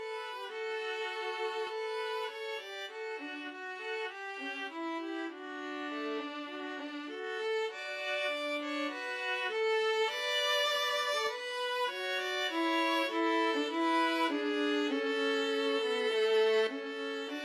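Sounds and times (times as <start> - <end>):
string trio playing a folk tune: 0.0 - 17.4.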